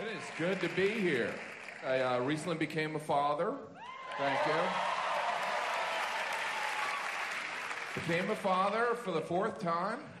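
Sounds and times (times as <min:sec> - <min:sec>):
large audience clapping: 0:00.0 - 0:02.6, 0:04.0 - 0:08.9
speech: 0:00.4 - 0:04.9, 0:08.0 - 0:10.1.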